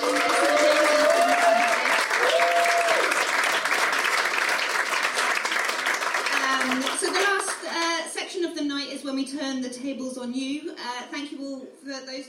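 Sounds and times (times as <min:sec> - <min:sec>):
audience applause: 0:00.0 - 0:07.8
speech: 0:09.7 - 0:12.2.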